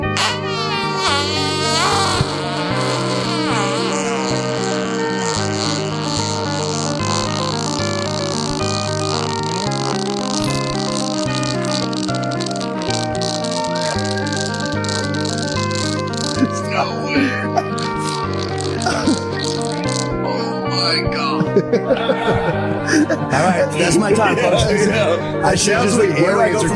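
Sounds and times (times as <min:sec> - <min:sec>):
long rattling fart: 0:00.1 - 0:20.8
laughter: 0:16.3 - 0:26.7
speech: 0:25.5 - 0:26.7.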